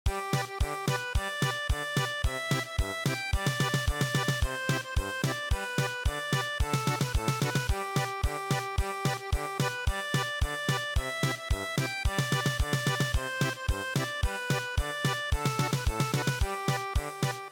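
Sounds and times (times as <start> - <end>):
German polka music: 0.1 - 17.5.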